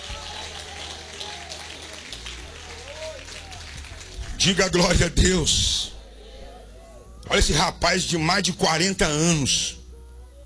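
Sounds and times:
applause: 0.0s - 5.3s
speech: 4.4s - 5.9s, 7.3s - 9.8s.

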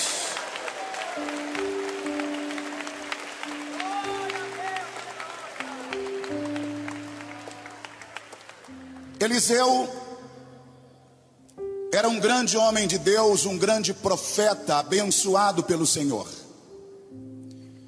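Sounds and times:
audience applauding: 0.0s - 9.3s
speech: 9.2s - 10.0s, 12.0s - 16.4s.

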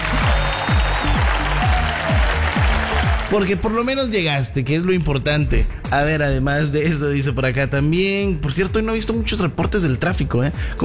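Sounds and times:
applause: 0.0s - 3.6s
speech: 3.3s - 10.8s.

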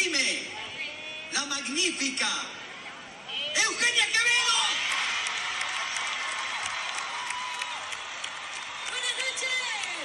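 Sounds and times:
speech: 1.4s - 2.6s, 3.6s - 4.4s
audience ovation applause: 4.6s - 10.0s.

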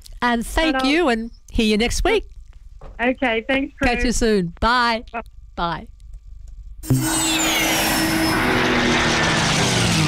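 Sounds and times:
speech: 0.2s - 2.3s, 2.9s - 5.9s, 6.8s - 7.7s
propeller warbird aircraft engine roaring: 7.4s - 10.0s.

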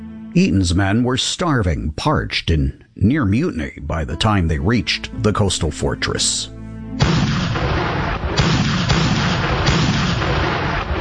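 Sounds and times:
speech: 0.4s - 7.1s
naval bombardment heavy artillery fire booming: 7.0s - 11.0s.

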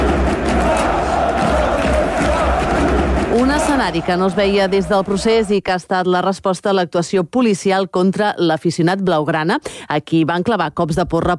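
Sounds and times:
stadium crowd chanting for independence: 0.0s - 5.7s
speech: 3.8s - 11.3s.

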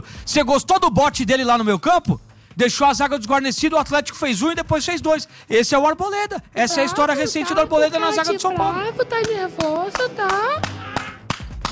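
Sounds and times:
speech: 0.0s - 10.7s
hands clapping: 9.2s - 11.7s.

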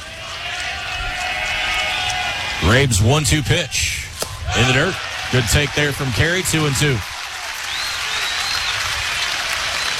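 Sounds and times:
crowd applause at a baseball game: 0.0s - 2.9s, 4.5s - 9.9s
speech: 2.6s - 7.1s.

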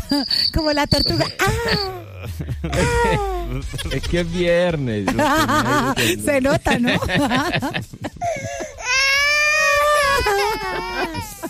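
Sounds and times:
speech: 0.1s - 8.4s
laughter: 1.2s - 4.2s, 5.0s - 8.8s, 9.9s - 11.4s
baby crying: 1.3s - 2.2s, 8.3s - 11.4s.

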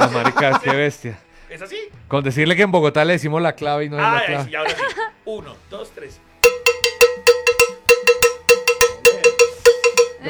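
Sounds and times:
speech: 0.1s - 6.2s
cowbell being played: 6.4s - 10.2s.

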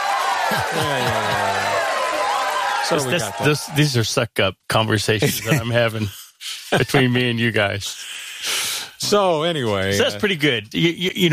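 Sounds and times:
applause sound effect: 0.0s - 3.9s
laughter: 0.4s - 2.0s, 5.2s - 7.4s
speech: 0.5s - 1.6s, 2.9s - 11.3s.

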